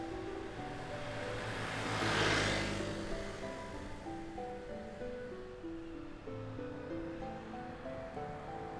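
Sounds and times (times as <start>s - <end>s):
motorbike passing: 0.0s - 5.0s
tram passing: 0.0s - 8.7s.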